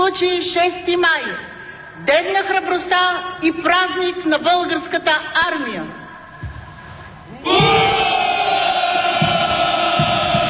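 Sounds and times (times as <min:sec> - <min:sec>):
speech: 0:00.1 - 0:06.0, 0:07.4 - 0:08.0
special forces paratroopers roaring a shouted greeting at a parade: 0:07.4 - 0:10.4.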